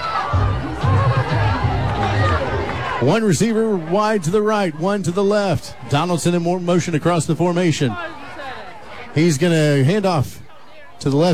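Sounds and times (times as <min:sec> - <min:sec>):
home crowd cheering at football game: 0:00.0 - 0:11.3
speech: 0:03.0 - 0:08.2, 0:09.2 - 0:10.4, 0:11.0 - 0:11.3.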